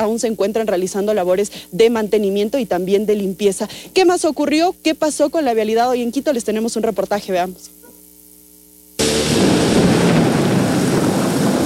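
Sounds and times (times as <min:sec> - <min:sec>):
speech: 0:00.0 - 0:07.8
heavy rain with hail: 0:09.0 - 0:11.6.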